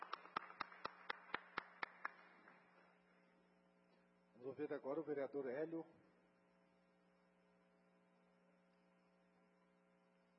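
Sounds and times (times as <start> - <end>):
sharp claps: 0.0 - 2.9
low hum: 0.0 - 10.3
speech: 4.4 - 6.0.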